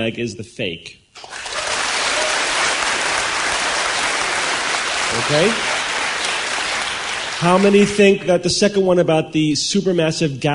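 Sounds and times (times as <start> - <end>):
speech: 0.0 - 1.3, 5.1 - 5.7, 7.4 - 10.5
crowd clapping: 1.2 - 8.2.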